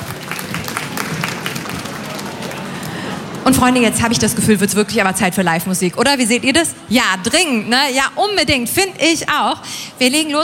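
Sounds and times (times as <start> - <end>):
audience applause: 0.0 - 3.6
speech: 3.5 - 10.4.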